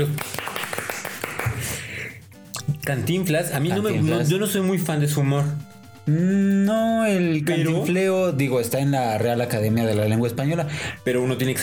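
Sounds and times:
applause: 0:00.0 - 0:02.1
speech: 0:02.9 - 0:11.6.

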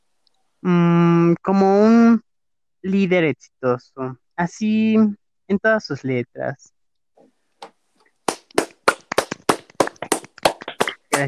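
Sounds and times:
speech: 0:00.6 - 0:02.2, 0:02.8 - 0:06.8
people clapping: 0:08.3 - 0:11.2.

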